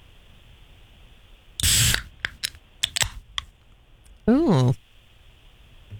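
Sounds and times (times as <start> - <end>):
soda fizzing: 1.6 - 2.5.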